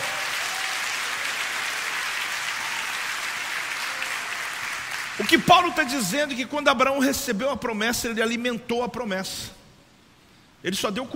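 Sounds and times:
crowd applause: 0.0 - 5.5
speech: 5.2 - 9.6, 10.6 - 11.1.

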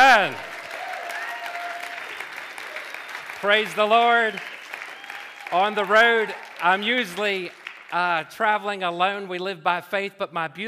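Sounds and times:
audience applause: 0.0 - 8.1
speech: 0.2 - 0.5, 3.4 - 4.6, 5.5 - 10.6.

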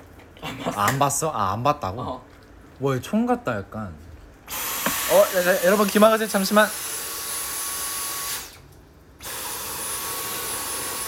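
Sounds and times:
speech: 0.6 - 6.9
vacuum cleaner running: 4.5 - 8.6, 9.2 - 11.0.

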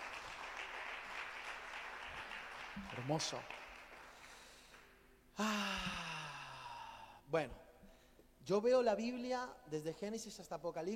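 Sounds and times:
audience applauding: 0.0 - 4.8
speech: 2.8 - 3.6, 5.4 - 5.8, 7.3 - 7.6, 8.4 - 10.9.

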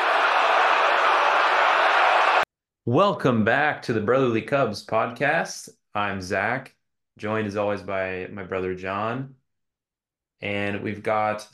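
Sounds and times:
stadium crowd cheering: 0.0 - 2.5
speech: 2.9 - 9.4, 10.4 - 11.5.

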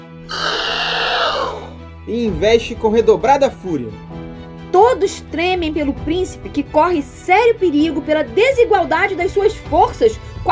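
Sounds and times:
scorpion monster roaring in pain: 0.2 - 1.8
speech: 2.1 - 10.3.

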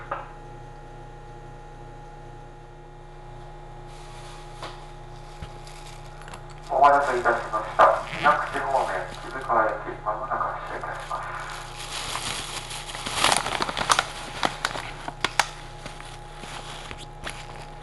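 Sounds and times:
train motor hum on the Minakuchi–Gamono line: 3.3 - 17.8
person speaking: 5.5 - 17.8.

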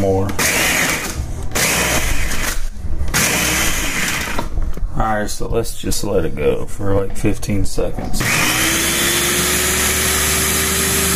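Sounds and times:
speech: 0.0 - 0.6, 5.2 - 8.5
blender chopping ice into snow: 0.4 - 4.5, 8.2 - 11.1.

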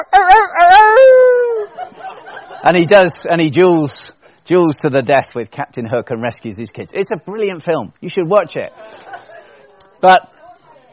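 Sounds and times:
person imitating a rooster crow: 0.0 - 1.7
laughter: 1.4 - 2.8, 8.7 - 9.6
speech: 2.6 - 9.1, 10.0 - 10.4.

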